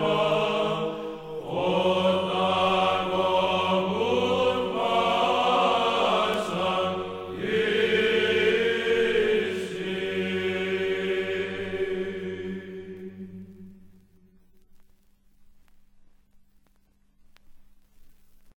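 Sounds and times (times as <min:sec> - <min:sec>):
Greek church service chanting: 0:00.0 - 0:14.4.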